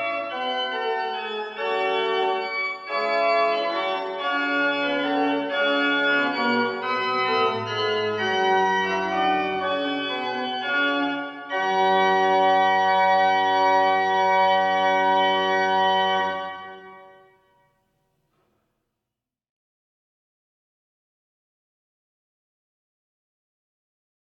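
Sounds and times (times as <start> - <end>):
organ pieces: 0.0 - 17.6.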